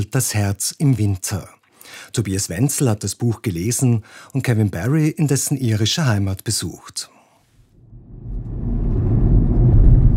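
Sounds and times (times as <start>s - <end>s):
speech: 0.0s - 7.1s
car engine rumble driving through County Sligo, Ireland: 8.2s - 10.1s.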